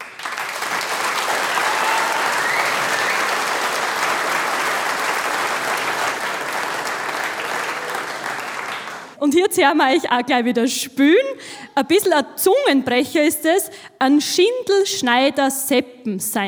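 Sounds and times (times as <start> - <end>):
audience applause: 0.0 - 9.2
speech: 9.2 - 16.4.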